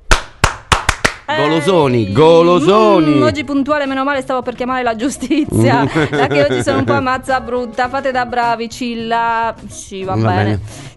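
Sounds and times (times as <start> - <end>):
rhythmic group clapping by a radio studio crew doing a double Cuban applause: 0.0 - 1.4
speech: 1.3 - 10.9
laughter: 5.3 - 7.2.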